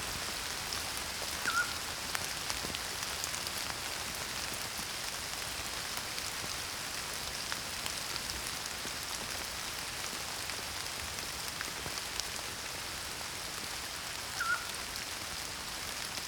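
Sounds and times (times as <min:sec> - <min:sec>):
rain: 0:00.0 - 0:16.2
pygmy owl calling: 0:01.4 - 0:01.8, 0:14.4 - 0:14.8.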